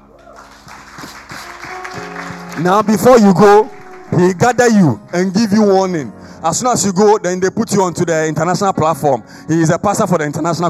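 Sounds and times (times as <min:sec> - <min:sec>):
audience clapping: 0:00.1 - 0:04.8
speech: 0:02.6 - 0:10.6.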